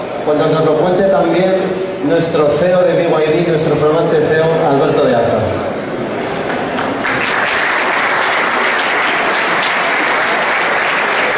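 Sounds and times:
speech: 0:00.2 - 0:05.7
audience applause: 0:06.4 - 0:11.3.

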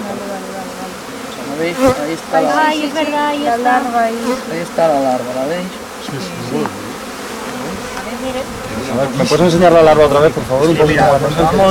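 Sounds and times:
bees buzzing inside an opened beehive: 0:00.0 - 0:11.6
speech: 0:01.6 - 0:06.8, 0:08.2 - 0:11.6.

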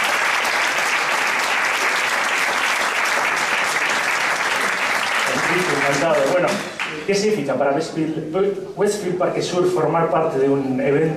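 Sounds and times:
audience applause: 0:00.0 - 0:07.1
speech: 0:05.9 - 0:11.1.

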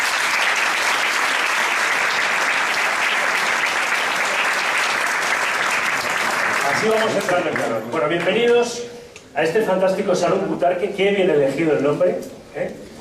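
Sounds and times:
applause: 0:00.0 - 0:08.4
speech: 0:06.8 - 0:12.9.

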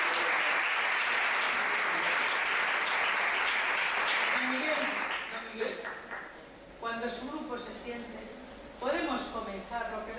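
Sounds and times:
applause: 0:00.0 - 0:06.3
speech: 0:07.0 - 0:10.1.

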